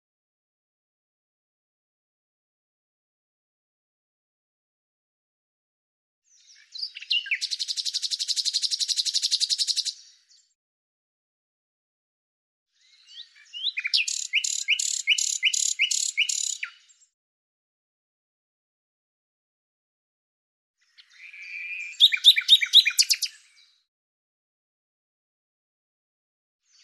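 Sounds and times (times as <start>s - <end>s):
bird song with scratchy notes and a run of high sharp notes: 6.2s - 10.6s, 12.7s - 17.2s, 20.8s - 23.9s, 26.6s - 26.8s.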